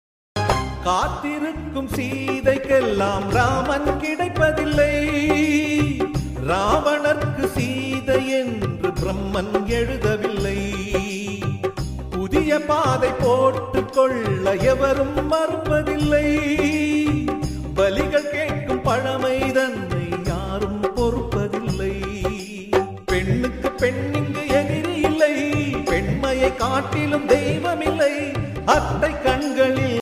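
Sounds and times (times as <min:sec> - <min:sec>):
Tamil song: 0:00.4 - 0:29.9.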